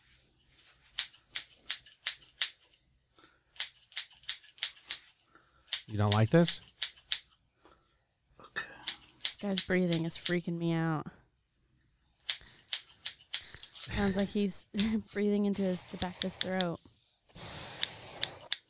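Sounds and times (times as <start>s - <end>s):
scissors snipping hair in ASMR haircut: 0.9s - 2.7s, 3.6s - 7.4s, 8.8s - 10.4s, 12.2s - 14.2s, 16.0s - 16.8s
speech: 5.9s - 6.7s, 9.4s - 11.2s, 14.0s - 16.9s.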